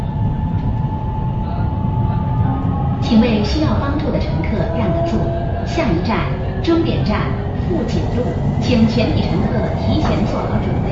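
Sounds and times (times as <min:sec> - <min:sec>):
Metro Line 1 train bound for Fujin Road rumbling: 0:00.0 - 0:10.9
speech: 0:03.1 - 0:10.9.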